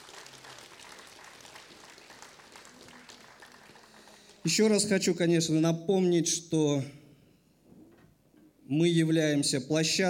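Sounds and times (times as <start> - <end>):
audience applauding: 0.0 - 4.5
speech: 4.4 - 7.0, 8.7 - 10.0.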